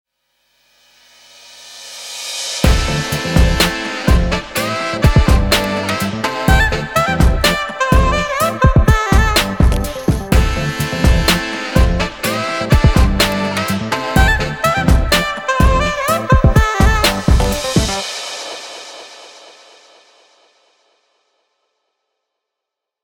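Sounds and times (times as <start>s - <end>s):
experimental saxophone: 2.6s - 18.0s.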